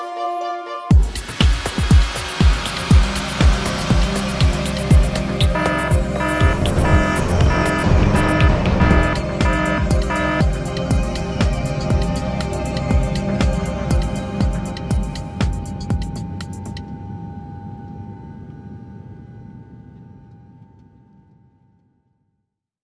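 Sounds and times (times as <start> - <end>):
instrumental music: 0.0 - 17.0.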